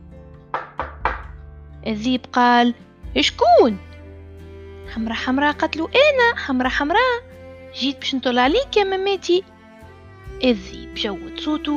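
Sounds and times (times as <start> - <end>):
knocking on a door: 0.5 - 1.4
speech: 1.8 - 3.9, 4.9 - 9.5, 10.4 - 11.7.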